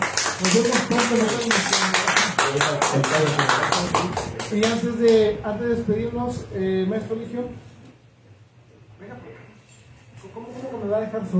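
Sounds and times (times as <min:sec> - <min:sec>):
audience applause: 0:00.0 - 0:04.8
speech: 0:00.4 - 0:07.7, 0:10.3 - 0:11.3.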